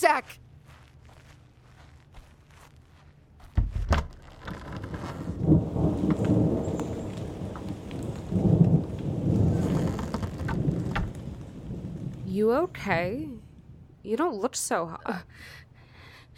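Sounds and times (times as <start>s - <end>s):
speech: 0.0s - 0.5s, 12.4s - 13.4s, 14.0s - 15.6s
heavy rain pouring outside: 4.4s - 13.8s.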